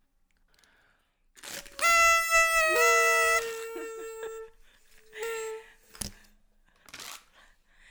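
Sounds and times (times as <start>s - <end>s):
toy horn being blown: 1.6s - 6.2s.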